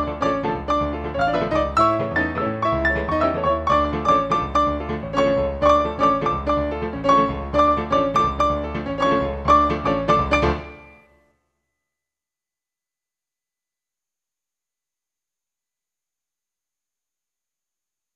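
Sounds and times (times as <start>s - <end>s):
samba music: 0.0s - 11.0s.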